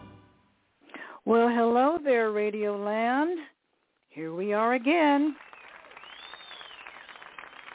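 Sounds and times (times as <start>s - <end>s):
speech: 1.3s - 3.5s, 4.1s - 5.5s
applause: 4.7s - 7.7s.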